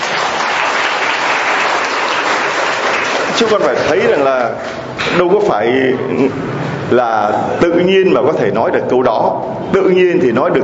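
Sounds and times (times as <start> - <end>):
children clapping at a church gathering: 0.0 - 5.2
speech: 3.4 - 10.6.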